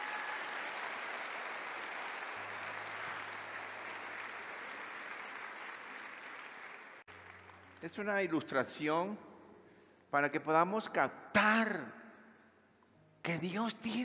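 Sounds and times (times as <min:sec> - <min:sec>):
audience applauding: 0:00.0 - 0:08.2
speech: 0:07.8 - 0:09.3, 0:10.1 - 0:12.0, 0:13.2 - 0:14.0.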